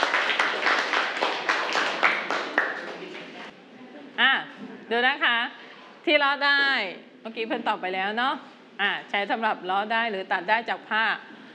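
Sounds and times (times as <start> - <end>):
classroom clapping: 0.0 - 3.5
speech: 4.9 - 11.3.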